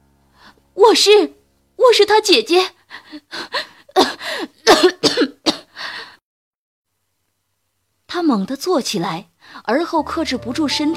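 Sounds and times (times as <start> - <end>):
speech: 0.8 - 3.7, 4.3 - 5.4, 8.2 - 10.9
man coughing while clutching his chest: 4.0 - 5.7.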